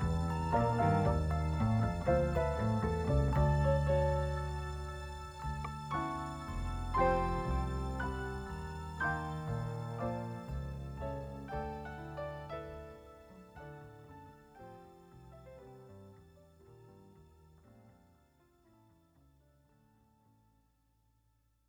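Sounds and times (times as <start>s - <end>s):
jazz-rock orchestra playing a concerto: 0.0s - 11.5s.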